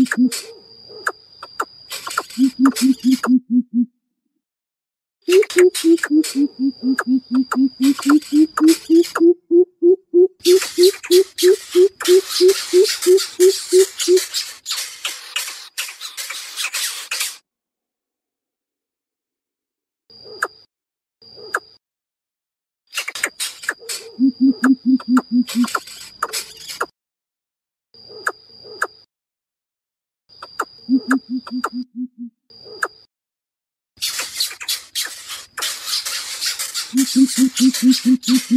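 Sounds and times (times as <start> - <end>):
greater coucal hooting: 0.0 - 0.6, 2.2 - 3.9, 5.3 - 14.3, 24.1 - 25.7, 30.9 - 32.3, 37.0 - 38.5.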